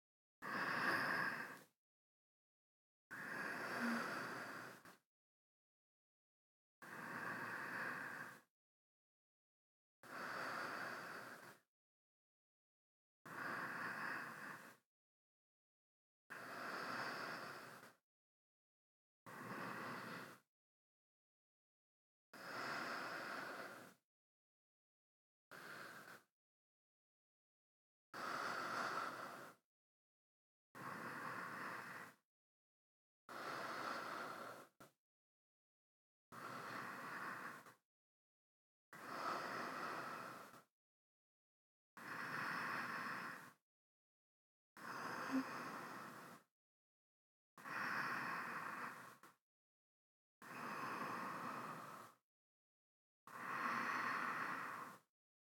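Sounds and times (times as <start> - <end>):
person breathing in sleep: 0.4 - 1.7, 3.1 - 5.0, 6.8 - 8.5, 10.0 - 11.6, 13.3 - 14.8, 16.3 - 18.0, 19.3 - 20.4, 22.4 - 24.0, 25.5 - 26.3, 28.1 - 29.6, 30.8 - 32.2, 33.3 - 34.9, 36.3 - 37.8, 38.9 - 40.7, 42.0 - 43.6, 44.8 - 46.5, 47.6 - 49.4, 50.4 - 52.2, 53.3 - 55.1.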